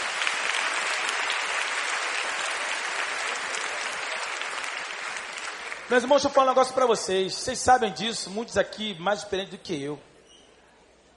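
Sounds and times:
audience applause: 0.0 - 6.6
speech: 5.9 - 10.1.

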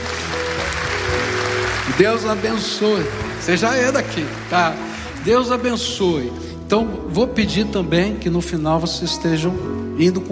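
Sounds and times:
crowd applauding: 0.0 - 6.4
speech: 1.9 - 10.3.

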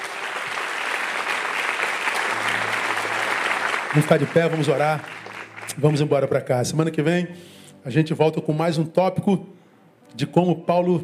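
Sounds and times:
audience applause: 0.0 - 6.3
speech: 3.9 - 11.0.

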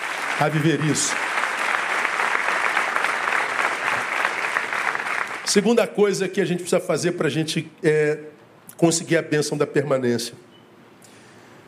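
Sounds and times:
audience applause: 0.0 - 5.6
speech: 0.4 - 1.4, 5.5 - 10.5.

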